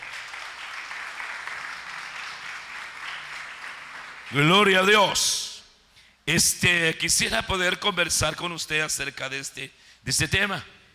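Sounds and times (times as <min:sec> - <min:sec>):
audience applause: 0:00.0 - 0:04.5
speech: 0:04.3 - 0:05.4, 0:06.3 - 0:10.8.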